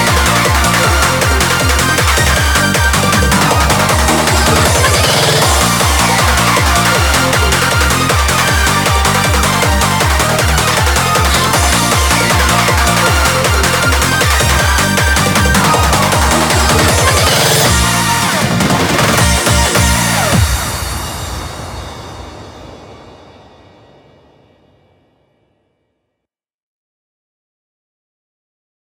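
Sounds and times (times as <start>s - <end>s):
Eurobeat remix: 0.0s - 21.7s.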